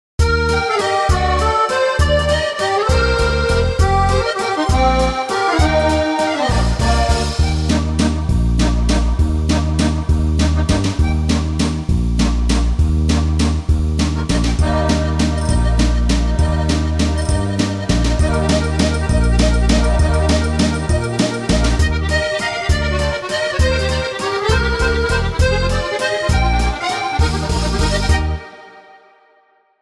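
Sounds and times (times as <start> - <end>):
musette waltz: 0.3 - 28.4.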